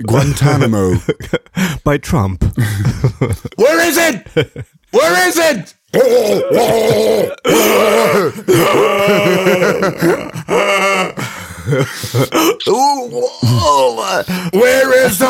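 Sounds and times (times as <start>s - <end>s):
speech: 0.0s - 15.2s
laughter: 2.6s - 4.8s, 6.4s - 12.6s
strained gurgling groans and grunts from staged waterboarding in a car: 6.0s - 11.2s
sharp gasping bursts: 6.0s - 12.7s.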